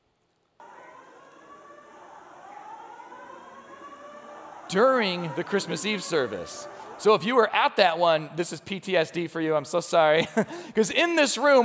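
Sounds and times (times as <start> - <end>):
fire alarm going off: 0.6 - 8.4
speech: 4.7 - 11.6.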